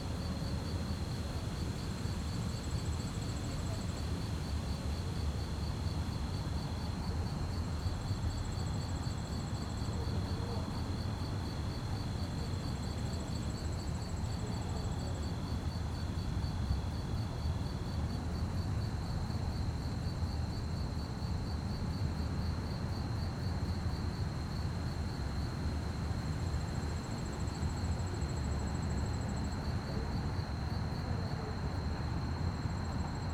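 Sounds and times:
crickets chirping: 0.0 - 33.3.

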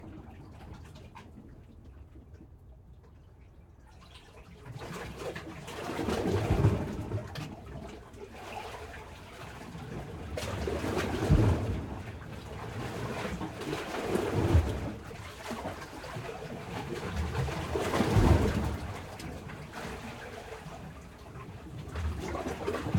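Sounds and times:
calm sea waves in a small cave: 4.9 - 22.9.

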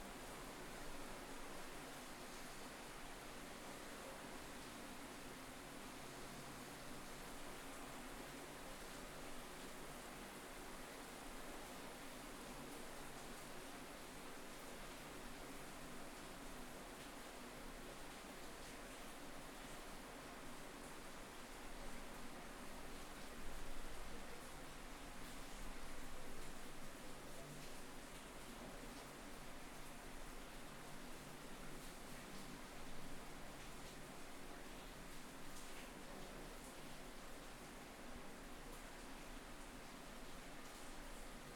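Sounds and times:
rain through an open ground floor kitchen window: 0.0 - 41.5.

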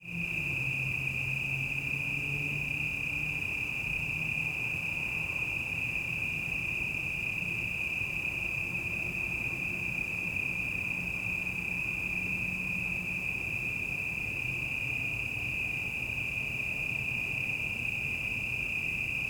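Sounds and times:
cicadas droning on a city evening at night: 0.0 - 19.2.

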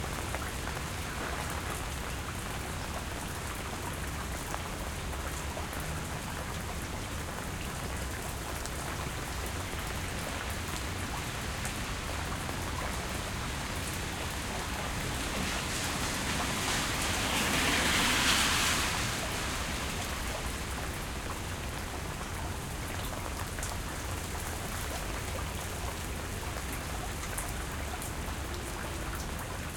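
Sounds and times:
rain near a sewer on a quiet street: 0.0 - 29.7.

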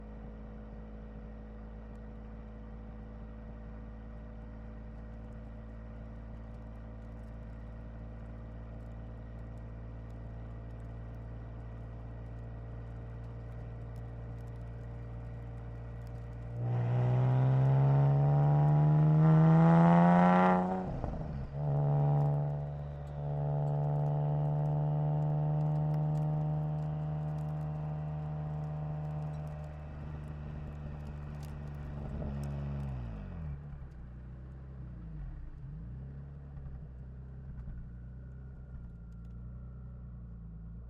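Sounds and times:
2012 Nissan 370Z engine starting and driving at steady RPMs: 11.6 - 40.6.

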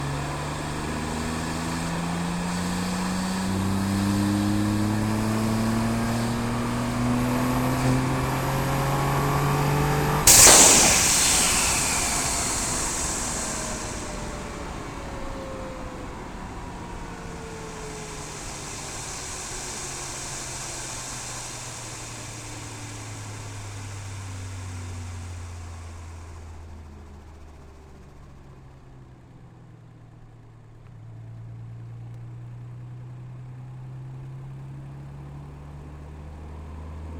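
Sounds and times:
2012 Nissan GT-R R35 engine during onboard drive on ramps: 0.0 - 26.2.

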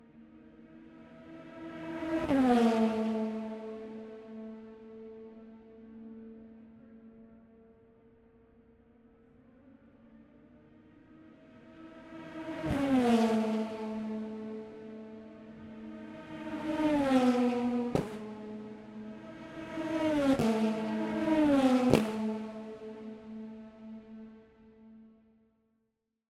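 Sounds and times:
Pro Mazda race cars passing on a straight in qualifying: 0.2 - 6.2, 10.2 - 24.8.

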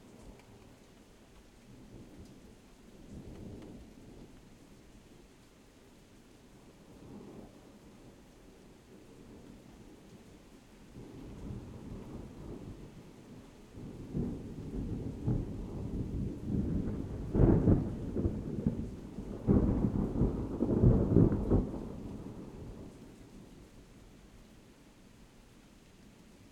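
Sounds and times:
rain in a suburban thunderstorm: 0.0 - 26.5
distant thunder in a suburban thunderstorm: 11.0 - 22.9.

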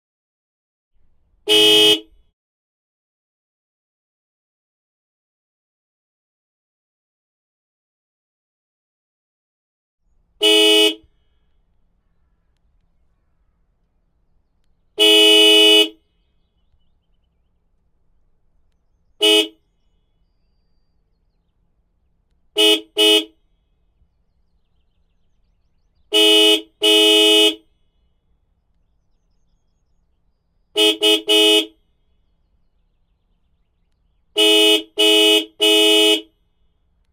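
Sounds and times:
MAN Lion's Coach bus horn: 1.5 - 2.2, 10.4 - 11.1, 15.0 - 16.0, 19.2 - 19.6, 22.6 - 23.4, 26.1 - 27.7, 30.8 - 31.8, 34.4 - 36.4.

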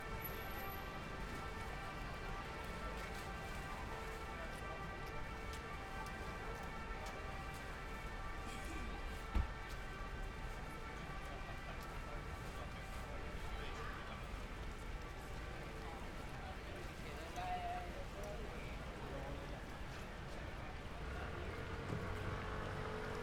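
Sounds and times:
fire truck passing with loud sirens on Gran Via in Madrid: 0.0 - 13.4, 20.2 - 23.2
pedestrians on Gran Via in Madrid: 0.0 - 23.2.

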